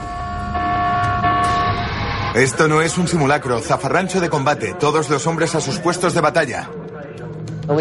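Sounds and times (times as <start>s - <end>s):
World War II battle siren: 0.0s - 3.8s
speech: 2.4s - 6.8s.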